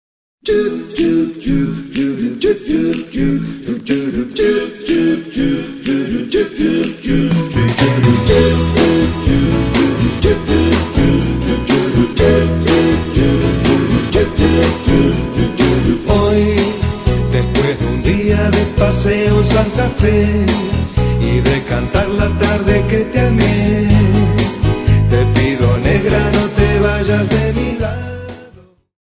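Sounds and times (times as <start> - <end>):
music beat: 0.8 - 28.0.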